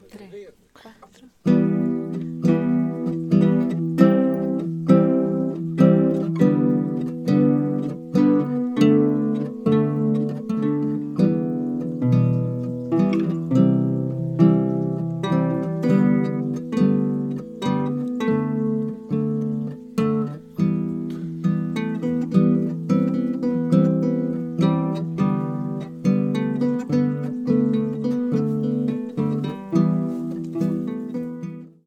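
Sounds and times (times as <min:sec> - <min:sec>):
live guitar recorded with a Blue Yeti microphone: 0:01.3 - 0:31.8.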